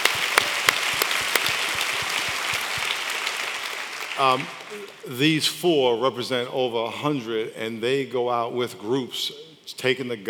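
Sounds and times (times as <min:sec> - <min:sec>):
audience applause: 0:00.0 - 0:05.1
speech: 0:04.2 - 0:10.2.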